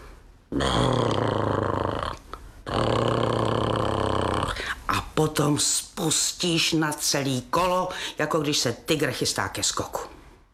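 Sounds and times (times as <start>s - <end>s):
speech: 0.5s - 1.3s, 5.2s - 10.1s
voice imitating a horse snoring: 0.5s - 4.6s.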